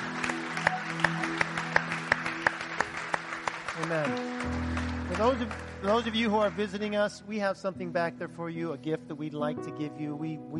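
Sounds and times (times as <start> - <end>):
audience clapping in steady rhythm: 0.0 - 7.4
speech: 3.8 - 4.3, 5.2 - 10.5
soft sustained low musical tone: 3.8 - 10.5.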